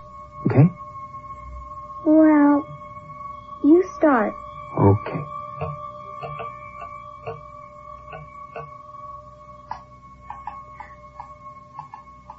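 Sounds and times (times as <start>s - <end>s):
rhythmic tapping: 0.0s - 0.8s, 3.6s - 8.9s, 9.6s - 12.3s.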